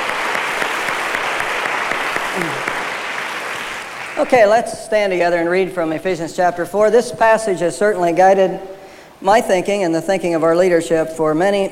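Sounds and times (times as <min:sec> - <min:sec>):
audience applause: 0:00.0 - 0:04.3
speech: 0:02.4 - 0:02.7, 0:04.2 - 0:11.7.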